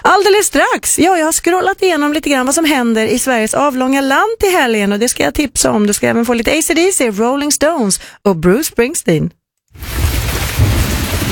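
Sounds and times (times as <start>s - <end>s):
speech: 0.2s - 10.0s
rumbling thunder: 9.8s - 11.3s
steady rain: 9.8s - 11.3s.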